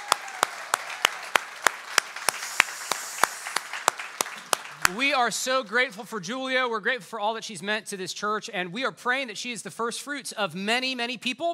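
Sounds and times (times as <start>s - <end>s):
audience applause: 0.0s - 5.4s
speech: 4.9s - 11.5s.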